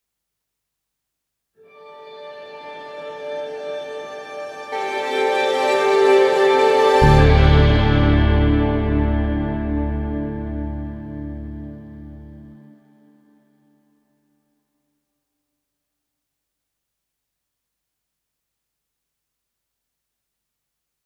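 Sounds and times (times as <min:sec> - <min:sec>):
musical stinger: 0:01.7 - 0:12.8.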